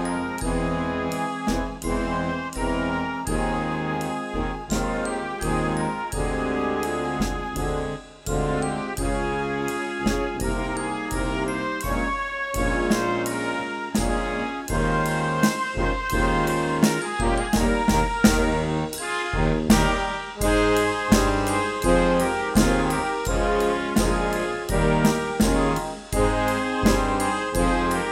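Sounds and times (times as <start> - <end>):
band arrangement: 0.0 - 28.1.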